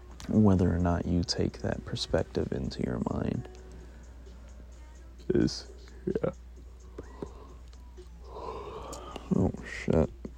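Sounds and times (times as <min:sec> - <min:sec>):
speech: 0:00.3 - 0:03.6, 0:05.3 - 0:06.4, 0:09.3 - 0:10.2
person yawning: 0:08.2 - 0:09.4.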